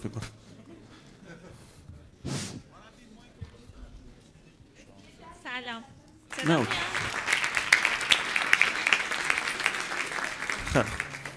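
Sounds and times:
speech: 0.0 - 0.4, 5.6 - 6.9
audience applause: 6.3 - 11.3.

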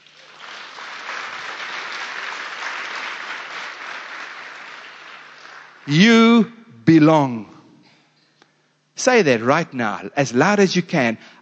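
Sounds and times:
audience hand clapping: 0.0 - 5.9
speech: 5.8 - 7.5, 9.0 - 11.4.

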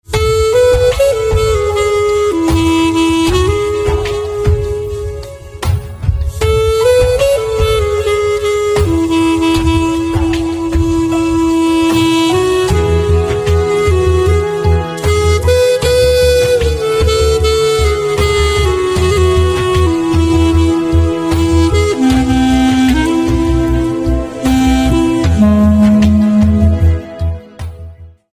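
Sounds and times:
flute: 0.0 - 28.3.

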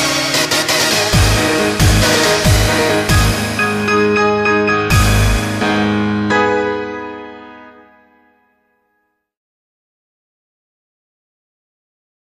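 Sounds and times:
nu rave music: 0.0 - 6.1.

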